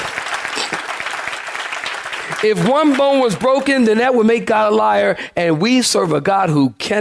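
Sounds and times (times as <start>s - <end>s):
audience clapping hands: 0.0s - 4.1s
speech: 2.4s - 6.9s.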